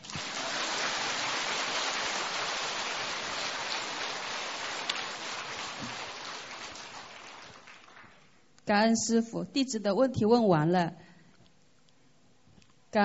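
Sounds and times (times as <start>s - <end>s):
large audience applause: 0.0s - 8.3s
speech: 8.7s - 11.1s.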